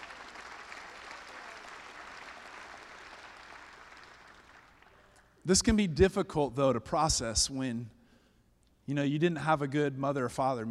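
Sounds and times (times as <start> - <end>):
audience applause: 0.0 - 5.0
speech: 5.5 - 8.0, 8.9 - 10.6.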